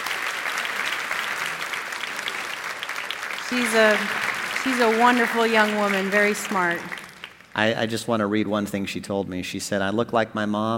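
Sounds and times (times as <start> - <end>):
crowd applauding: 0.0 - 7.8
speech: 3.5 - 7.0, 7.6 - 10.7.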